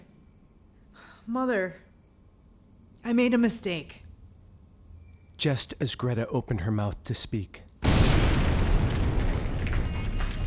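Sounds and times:
speech: 0:01.3 - 0:01.9, 0:03.0 - 0:04.0, 0:05.4 - 0:07.7
massive explosion in a spaceship hangar bay in an audio drama: 0:07.8 - 0:10.4.

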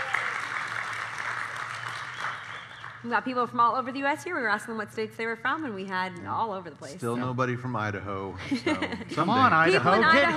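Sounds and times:
live studio audience clapping: 0:00.0 - 0:03.4
speech: 0:03.0 - 0:10.3
laughter: 0:08.4 - 0:10.3.

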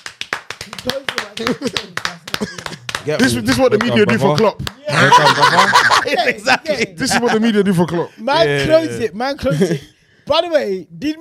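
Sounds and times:
people clapping: 0:00.0 - 0:06.0
speech: 0:00.8 - 0:11.2
laughter: 0:01.4 - 0:04.2, 0:04.8 - 0:09.9.

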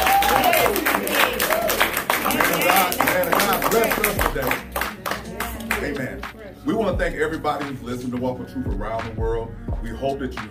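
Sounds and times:
audience hand clapping: 0:00.0 - 0:06.3
speech: 0:06.9 - 0:10.4.

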